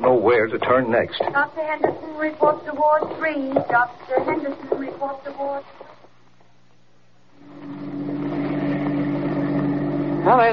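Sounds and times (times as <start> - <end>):
speech: 0.1 - 5.8, 10.2 - 10.5
car engine droning as the car drives up to park near a harbor dock: 7.4 - 10.5.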